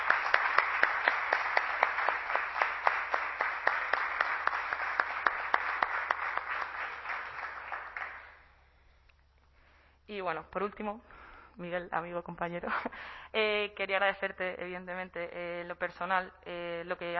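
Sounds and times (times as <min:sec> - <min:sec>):
audience applause: 0:00.0 - 0:08.4
speech: 0:10.2 - 0:17.1.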